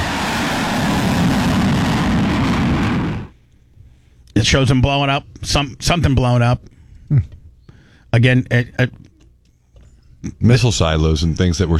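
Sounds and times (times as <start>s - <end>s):
fighter jet with afterburners on: 0.0s - 3.3s
speech: 4.4s - 7.4s, 8.1s - 9.0s, 10.2s - 11.7s.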